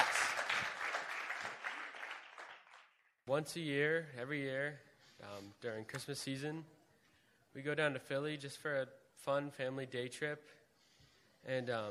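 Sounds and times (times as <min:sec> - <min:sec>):
audience round of applause: 0:00.0 - 0:02.9
speech: 0:03.3 - 0:06.8, 0:07.6 - 0:10.6, 0:11.4 - 0:11.8.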